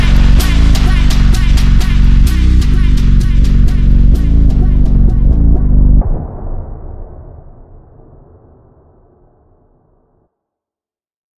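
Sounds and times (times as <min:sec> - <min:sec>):
phonk music: 0:00.0 - 0:06.1.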